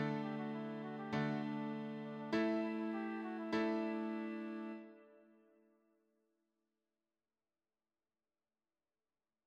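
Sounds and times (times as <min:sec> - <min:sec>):
piano: 0:00.0 - 0:05.5.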